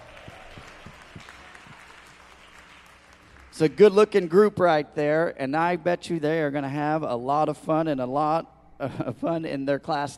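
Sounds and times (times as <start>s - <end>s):
audience applauding: 0.0s - 4.6s
speech: 3.6s - 10.1s.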